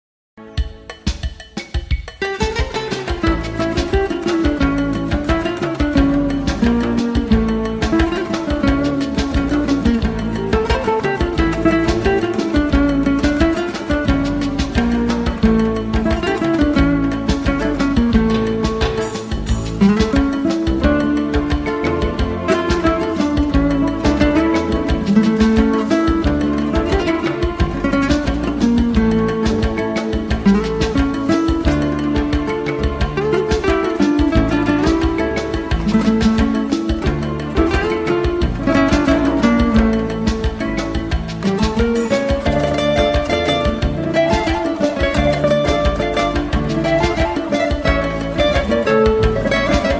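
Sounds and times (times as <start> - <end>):
guitar: 0.4 - 49.9.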